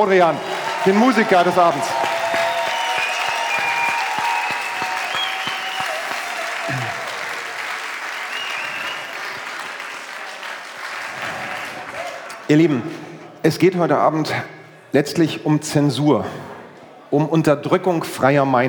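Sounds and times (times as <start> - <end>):
speech: 0.0 - 2.0, 12.5 - 16.5, 17.1 - 18.6
audience applause: 0.0 - 12.7.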